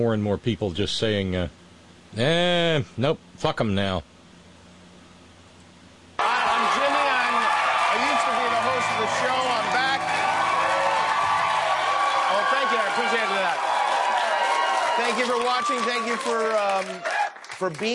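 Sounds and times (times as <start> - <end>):
speech: 0.0 - 4.1, 15.2 - 17.9
large crowd applauding: 6.2 - 17.9.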